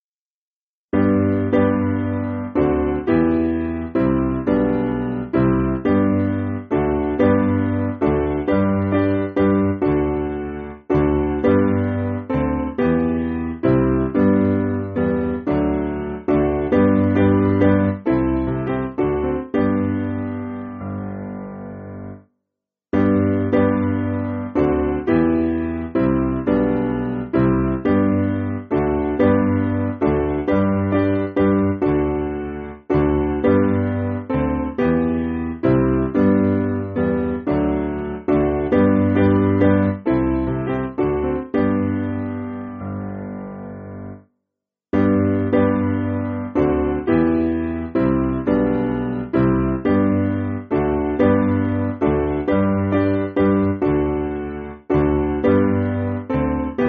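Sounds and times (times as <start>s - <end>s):
piano backing music for churches: 0.9s - 22.2s, 23.0s - 44.2s, 45.0s - 56.8s.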